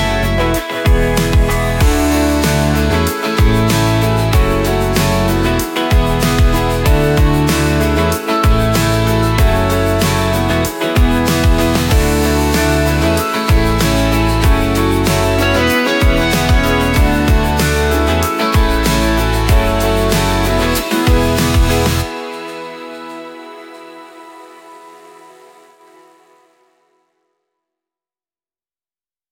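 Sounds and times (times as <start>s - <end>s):
drums in instrumental social media music: 0.0s - 23.1s
guitar in instrumental social media music: 0.0s - 26.5s
synth in instrumental social media music: 0.0s - 26.8s.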